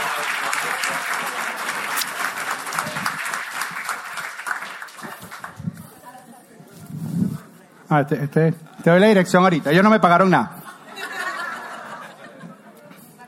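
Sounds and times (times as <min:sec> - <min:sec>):
audience applause: 0:00.0 - 0:05.7
speech: 0:07.9 - 0:10.6
laughter: 0:10.5 - 0:13.2.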